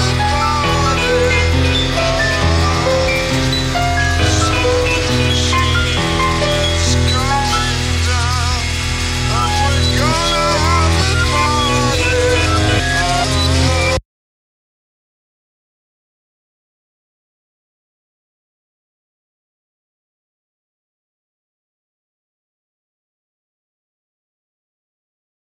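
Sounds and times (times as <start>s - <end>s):
pianola: 0.0s - 14.0s.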